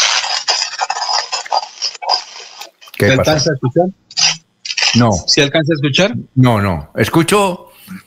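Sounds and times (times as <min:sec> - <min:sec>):
manual coffee grinder grinding: 0:00.0 - 0:03.0
speech: 0:03.0 - 0:04.0, 0:04.9 - 0:08.0.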